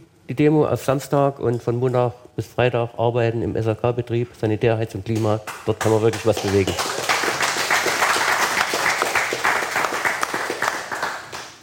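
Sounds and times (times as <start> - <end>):
speech: 0.3 - 7.0
audience applause: 5.8 - 11.6.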